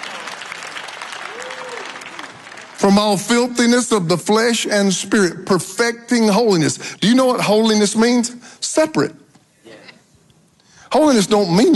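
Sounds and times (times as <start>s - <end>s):
church congregation applauding: 0.0s - 3.8s
speech: 2.8s - 9.2s, 11.0s - 11.7s.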